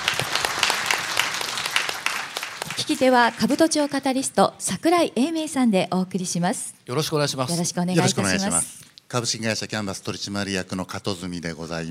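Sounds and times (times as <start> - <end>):
audience applause welcoming a company executive at an investor presentation: 0.0 - 4.1
speech: 2.8 - 11.8.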